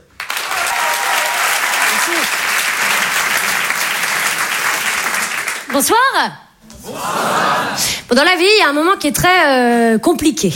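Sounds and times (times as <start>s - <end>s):
crowd applauding: 0.0s - 5.8s
person whooping: 0.5s - 2.4s
speech: 5.8s - 10.5s.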